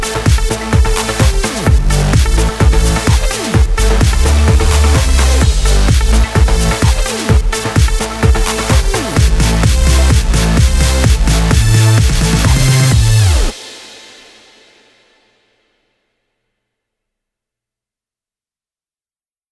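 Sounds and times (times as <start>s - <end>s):
music bed in A minor: 0.0s - 13.8s.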